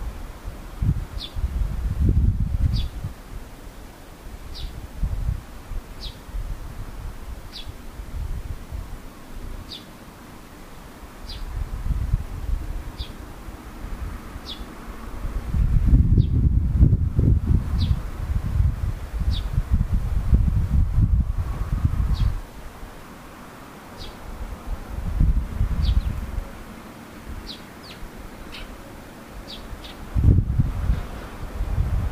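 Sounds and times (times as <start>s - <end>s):
heavy low rumbling wind buffeting: 0.0s - 32.1s
swallow chirping: 27.5s - 28.8s.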